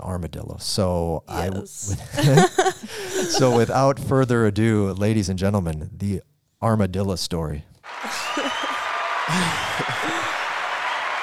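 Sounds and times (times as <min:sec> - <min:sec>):
speech: 0:00.1 - 0:07.7, 0:09.3 - 0:09.9
laughter: 0:01.8 - 0:03.8, 0:07.9 - 0:10.8
crowd applause: 0:07.9 - 0:11.2.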